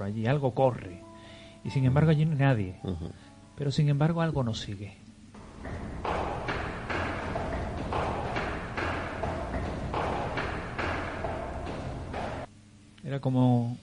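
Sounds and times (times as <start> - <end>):
speech: 0.0 - 1.0, 1.6 - 5.0, 13.1 - 13.8
footsteps on stairs: 5.4 - 12.5.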